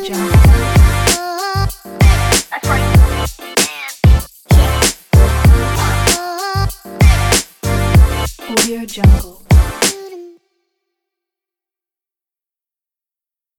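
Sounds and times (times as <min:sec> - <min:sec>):
hip hop music: 0:00.0 - 0:10.2.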